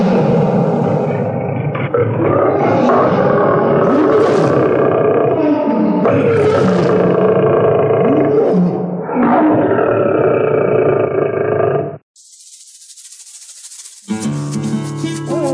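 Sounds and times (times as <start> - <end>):
lion roaring: 0.0 - 12.0
steady hiss: 12.2 - 15.0.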